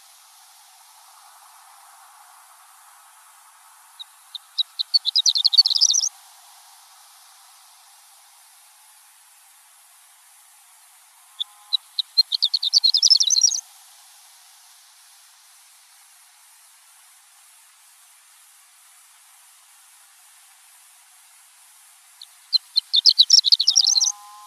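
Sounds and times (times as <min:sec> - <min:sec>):
horned lark chirping and twittering: 0:04.0 - 0:06.1, 0:11.4 - 0:13.6, 0:22.2 - 0:24.4.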